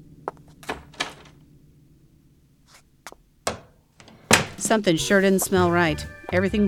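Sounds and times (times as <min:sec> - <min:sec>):
bathroom door being shut and locked: 0:00.6 - 0:01.4, 0:03.5 - 0:04.7
speech: 0:04.6 - 0:06.6.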